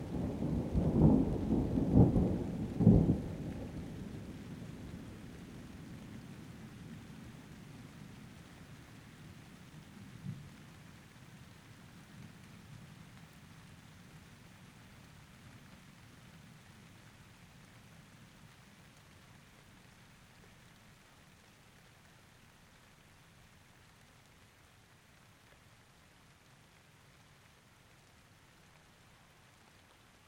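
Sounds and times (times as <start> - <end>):
thunder: 0.0 - 4.9
rain: 0.0 - 30.2.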